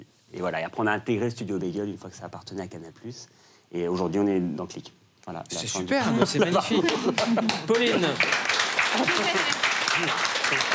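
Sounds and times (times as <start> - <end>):
speech: 0.4 - 10.7
laughter: 6.0 - 10.7
applause: 6.8 - 10.7.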